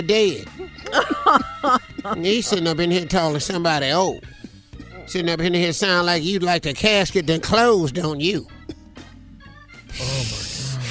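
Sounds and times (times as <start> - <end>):
speech: 0.0 - 4.4, 5.1 - 8.6
laughter: 0.5 - 3.6
heavy rasping breathing: 9.9 - 10.8.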